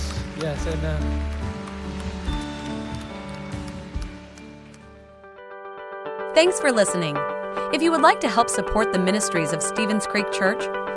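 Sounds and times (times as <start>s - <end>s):
audience clapping hands: 0.0s - 5.4s
speech: 0.4s - 2.2s, 6.4s - 10.9s.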